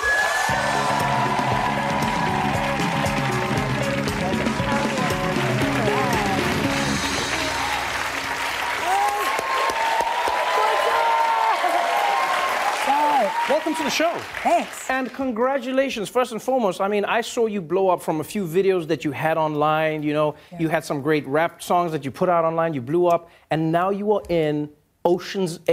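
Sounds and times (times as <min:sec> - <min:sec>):
studio audience whoops: 0:00.0 - 0:03.6, 0:05.6 - 0:13.9
studio audience applauding and cheering as a guest enters a talk show: 0:00.0 - 0:15.5
speech: 0:14.0 - 0:25.7.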